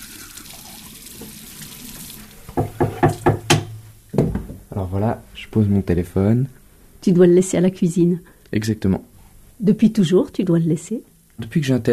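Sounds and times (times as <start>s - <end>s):
tap water running while brushing teeth: 0.0s - 4.5s
speech: 4.9s - 11.9s.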